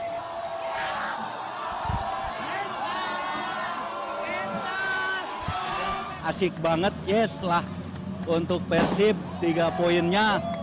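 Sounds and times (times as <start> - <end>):
Persib football fans cheering Bandung's win over Persija Jakarta: 0.0 - 6.6, 9.0 - 10.6
speech: 6.3 - 10.5.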